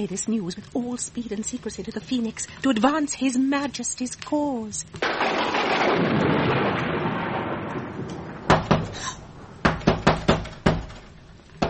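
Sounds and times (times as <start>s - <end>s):
speech: 0.0s - 7.0s
secret knock on a door: 8.5s - 8.9s, 9.6s - 11.6s.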